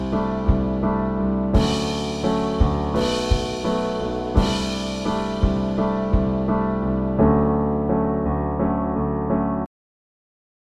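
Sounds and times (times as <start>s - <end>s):
rough drums: 0.0s - 6.8s
piano: 0.0s - 9.7s.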